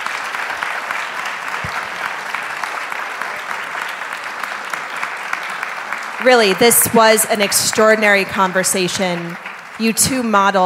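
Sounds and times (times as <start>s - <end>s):
room full of people applauding: 0.0s - 10.6s
speech: 6.2s - 10.6s.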